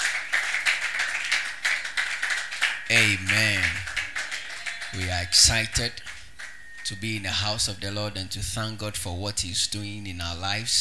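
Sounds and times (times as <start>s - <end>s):
audience clapping: 0.0s - 7.2s
speech: 2.9s - 3.9s, 4.9s - 6.1s, 6.9s - 10.7s.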